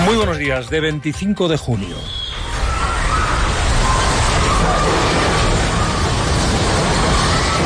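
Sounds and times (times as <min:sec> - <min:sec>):
speech: 0:00.1 - 0:02.3
earthquake rumbling: 0:02.1 - 0:07.6
walls collapsing: 0:02.1 - 0:07.6.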